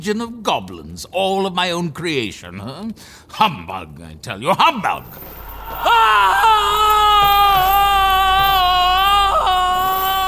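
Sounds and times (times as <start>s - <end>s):
speech: 0.0s - 6.9s
spirit shaking its chain: 5.1s - 10.2s
ghost's frightful wailing cry: 5.5s - 10.2s.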